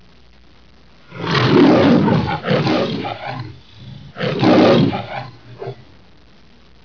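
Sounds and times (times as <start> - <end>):
lion: 1.1 - 5.9.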